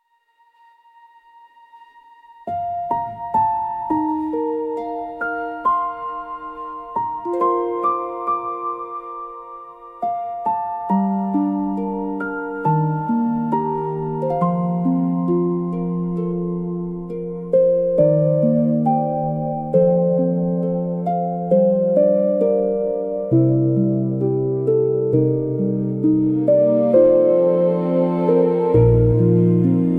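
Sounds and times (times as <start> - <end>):
fantasy music with forest nature: 0.0 - 29.9.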